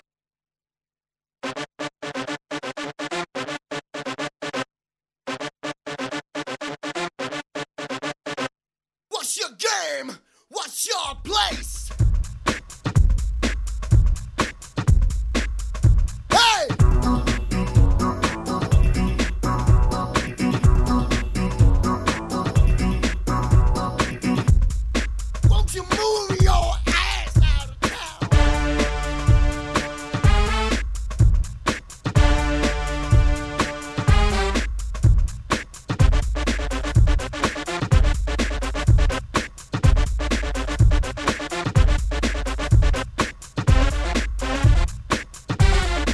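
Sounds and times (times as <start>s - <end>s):
big beat music: 9.1s - 46.1s.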